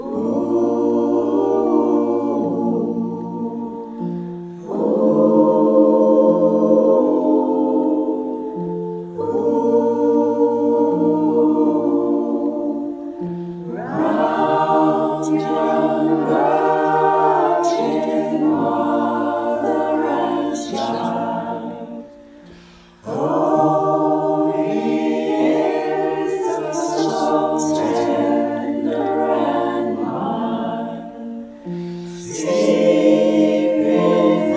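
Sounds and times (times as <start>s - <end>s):
christmas carol: 0.0s - 34.5s.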